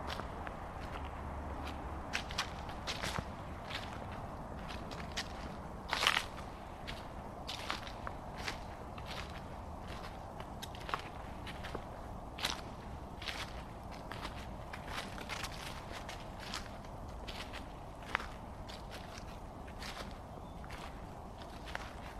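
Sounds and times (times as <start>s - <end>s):
footsteps in a September forest: 0.0s - 22.1s.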